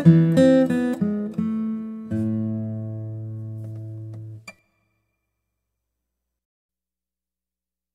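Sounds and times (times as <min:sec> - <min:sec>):
guitar: 0:00.0 - 0:05.2.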